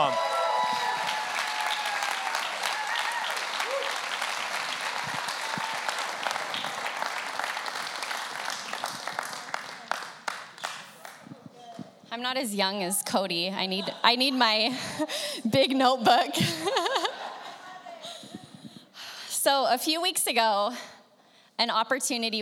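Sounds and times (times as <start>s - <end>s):
audience applause at a Christian gathering in Salt Lake City: 0.0s - 11.3s
speech: 12.3s - 16.9s, 19.5s - 20.9s, 21.6s - 22.4s.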